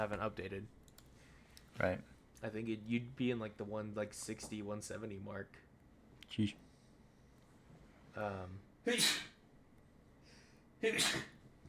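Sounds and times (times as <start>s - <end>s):
speech: 0.0s - 0.8s, 1.8s - 5.7s, 6.3s - 6.6s, 8.2s - 9.3s, 10.8s - 11.3s
loud sneezes: 8.9s - 9.4s, 10.8s - 11.4s.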